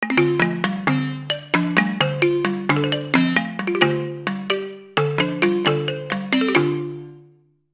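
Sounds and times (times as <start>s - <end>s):
balafon: 0.0s - 7.5s.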